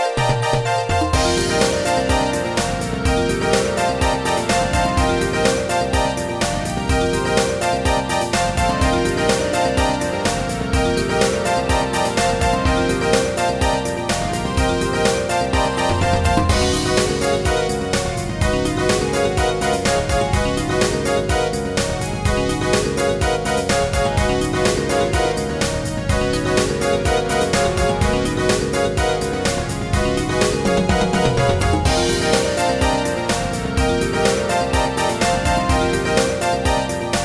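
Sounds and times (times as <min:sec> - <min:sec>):
staccato notes: 0:00.2 - 0:37.2.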